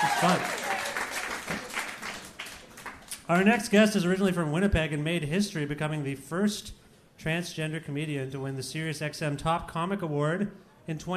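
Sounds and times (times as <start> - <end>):
audience applause: 0.0 - 3.1
speech: 0.2 - 0.6, 3.3 - 11.1.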